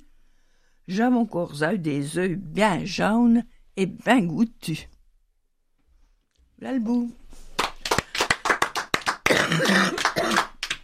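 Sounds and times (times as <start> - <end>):
speech: 0.9 - 4.9, 6.6 - 7.4
applause: 7.6 - 10.8
person coughing during applause: 9.3 - 10.6.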